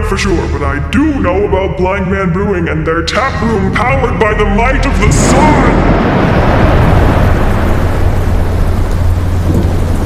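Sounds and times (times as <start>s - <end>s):
thunder rumbling: 0.0s - 10.0s
speech: 0.1s - 6.8s
heavy rain: 3.4s - 10.0s.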